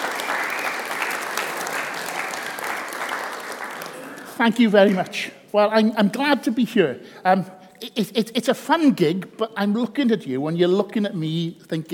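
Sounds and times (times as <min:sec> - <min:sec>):
audience applause: 0:00.0 - 0:04.4
speech: 0:04.4 - 0:11.9.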